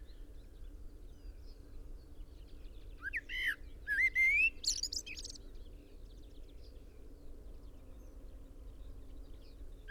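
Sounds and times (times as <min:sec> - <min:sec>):
common blackbird singing: 0:02.6 - 0:05.5.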